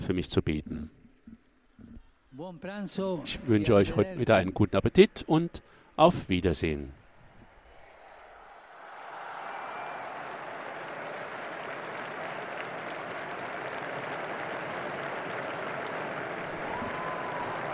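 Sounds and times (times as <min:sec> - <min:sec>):
speech: 0:00.1 - 0:01.0, 0:02.4 - 0:07.0
scattered cheers from a crowd on a square: 0:07.4 - 0:17.7
large outdoor crowd applauding on a square: 0:07.6 - 0:17.7.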